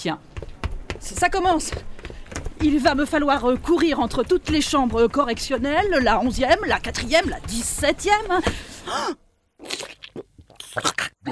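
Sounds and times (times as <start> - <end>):
speech: 0.0 - 9.2, 10.8 - 11.3
voice imitating comic biting and devouring: 9.6 - 11.3.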